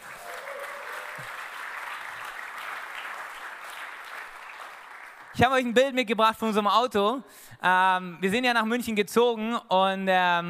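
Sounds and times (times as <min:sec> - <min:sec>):
audience applause for the band: 0:00.0 - 0:05.4
speech: 0:01.2 - 0:01.4, 0:05.4 - 0:10.4.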